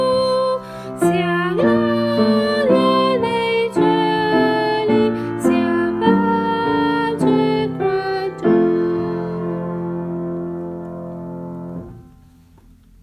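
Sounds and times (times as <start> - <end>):
sopranos singing: 0.0 - 10.2.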